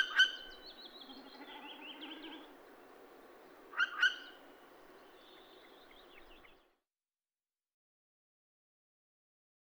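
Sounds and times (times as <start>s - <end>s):
adult Northern Hawk Owl vit vit vit calls: 0.0s - 6.6s.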